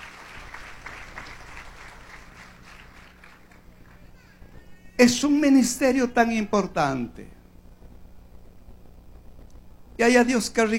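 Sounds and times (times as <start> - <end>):
audience applause: 0.0 - 4.8
speech: 5.0 - 7.4, 10.0 - 10.7.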